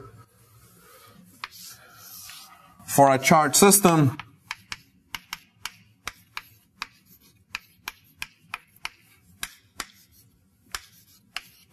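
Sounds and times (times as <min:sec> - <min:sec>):
writing on a board during a lecture: 0:01.3 - 0:02.6, 0:04.1 - 0:11.7
speech: 0:03.0 - 0:04.2.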